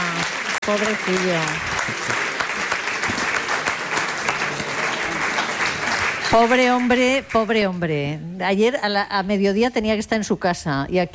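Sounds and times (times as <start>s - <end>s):
audience applause: 0.0s - 7.6s
speech: 0.7s - 2.1s, 6.3s - 11.1s.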